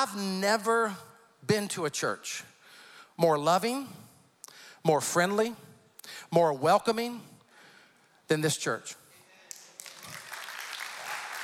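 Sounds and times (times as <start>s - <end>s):
speech: 0.0s - 2.5s, 3.2s - 4.0s, 4.8s - 7.3s, 8.3s - 9.0s
audience clapping: 9.5s - 11.4s.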